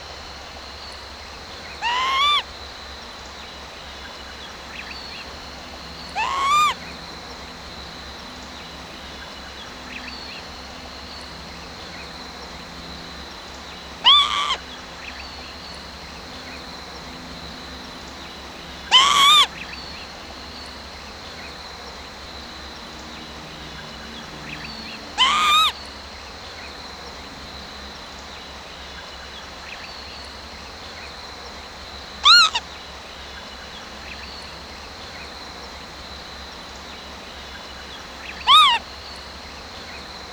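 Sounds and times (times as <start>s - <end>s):
female lapwing alarm calls: 1.7s - 2.5s, 5.3s - 7.4s, 13.8s - 15.2s, 17.9s - 20.0s, 24.5s - 25.9s, 32.2s - 32.7s, 38.0s - 39.2s.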